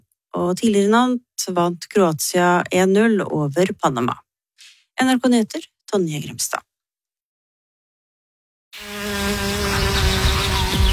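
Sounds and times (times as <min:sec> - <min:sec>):
speech: 0:00.4 - 0:04.2, 0:05.0 - 0:06.7
bumblebee buzzing: 0:08.8 - 0:10.9.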